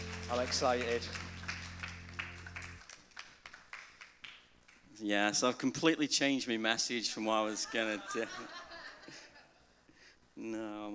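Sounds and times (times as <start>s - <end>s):
audience applause for speaker: 0.0s - 4.2s
speech: 0.3s - 1.3s, 5.0s - 8.6s, 10.4s - 10.9s
laughter: 7.5s - 9.6s.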